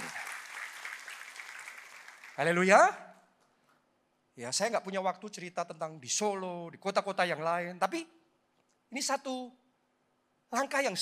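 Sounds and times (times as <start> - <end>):
audience applause: 0.0 - 2.6
speech: 2.4 - 3.0, 4.4 - 8.2, 8.9 - 9.6, 10.5 - 10.9.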